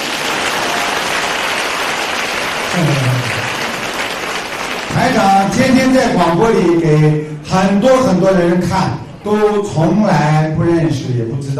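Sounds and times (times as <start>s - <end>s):
audience applause: 0.0s - 5.5s
speech: 2.8s - 3.4s, 5.0s - 11.5s.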